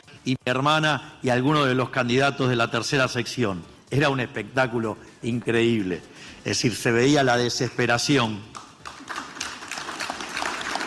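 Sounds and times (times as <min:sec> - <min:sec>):
speech: 0:00.2 - 0:08.6
lukewarm applause from a political gathering's crowd: 0:08.5 - 0:10.8.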